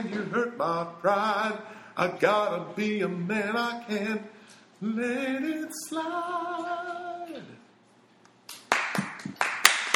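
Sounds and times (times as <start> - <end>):
speech: 0.0 - 7.6
hands clapping at the end of a performance: 8.4 - 9.9.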